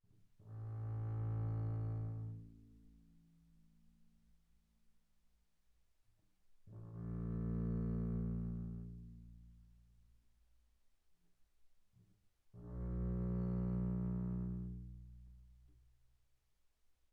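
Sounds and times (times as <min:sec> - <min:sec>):
double bass bowed pianissimo on the A string: 0:00.5 - 0:02.6, 0:06.8 - 0:09.6, 0:12.6 - 0:15.8.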